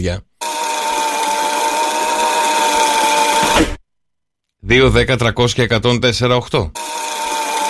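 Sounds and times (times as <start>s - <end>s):
speech: 0.0s - 0.3s, 4.6s - 7.1s
cassette tape rewinding: 0.4s - 3.8s, 6.8s - 7.6s.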